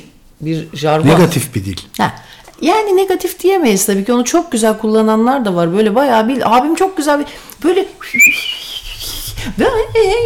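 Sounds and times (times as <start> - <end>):
speech: 0.4 - 8.5, 9.4 - 10.2
person whistling a tune: 8.0 - 9.3.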